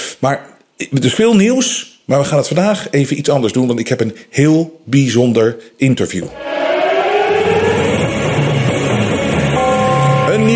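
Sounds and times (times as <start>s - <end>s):
speech: 0.2s - 6.6s
alarm siren wailing: 6.3s - 10.5s.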